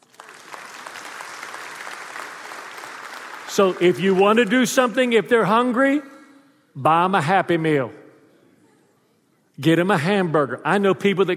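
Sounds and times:
audience applause: 0:00.0 - 0:04.8
speech: 0:03.5 - 0:06.1, 0:06.8 - 0:08.0, 0:09.6 - 0:11.3.

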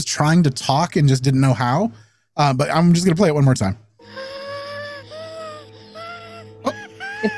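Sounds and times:
speech: 0:00.0 - 0:04.2
cartoon baby dinosaur yawning or screaming: 0:04.2 - 0:07.3.

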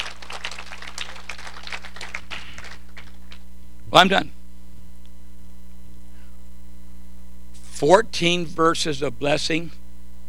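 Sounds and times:
audience clapping hands: 0:00.0 - 0:03.5
speech: 0:03.9 - 0:04.4, 0:07.8 - 0:09.8.

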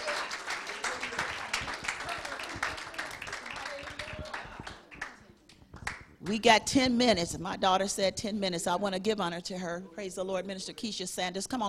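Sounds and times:
crowd clapping hands: 0:00.0 - 0:06.1
speech: 0:06.3 - 0:11.6.

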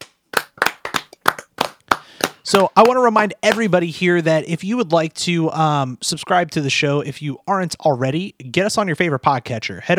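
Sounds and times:
hand clapping: 0:00.0 - 0:03.8
speech: 0:02.5 - 0:09.9.

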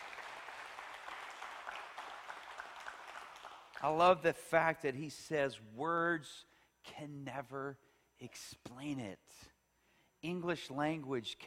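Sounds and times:
audience clapping: 0:00.0 - 0:04.2
speech: 0:03.8 - 0:09.5, 0:10.2 - 0:11.4.

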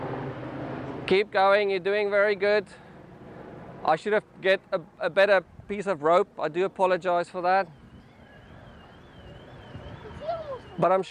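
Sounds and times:
speech: 0:01.1 - 0:02.8, 0:03.9 - 0:07.8, 0:10.8 - 0:11.0
car alarm going off: 0:07.6 - 0:11.0.

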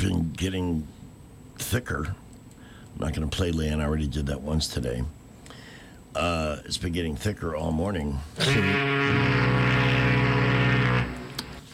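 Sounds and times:
speech: 0:00.0 - 0:01.0, 0:01.6 - 0:02.2, 0:03.0 - 0:05.2, 0:06.1 - 0:09.8
deep droning foghorn sound effect blast: 0:08.4 - 0:11.6.

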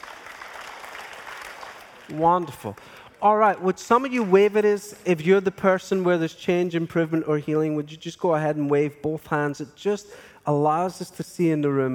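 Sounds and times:
audience clapping: 0:00.0 - 0:05.2
speech: 0:02.1 - 0:11.9.

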